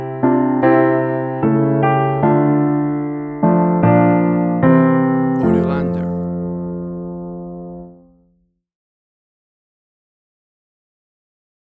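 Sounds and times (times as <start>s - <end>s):
soft piano piece: 0.0s - 8.4s.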